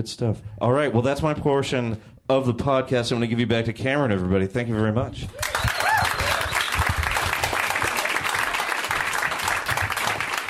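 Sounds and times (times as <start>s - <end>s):
speech: 0.0s - 6.2s
audience applause: 5.4s - 10.4s.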